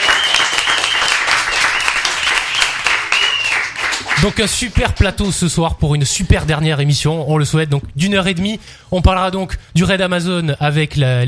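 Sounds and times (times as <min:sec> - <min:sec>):
high whistle or cheer: 0:00.0 - 0:03.8
studio audience applauding: 0:00.0 - 0:05.4
speech: 0:04.2 - 0:11.2.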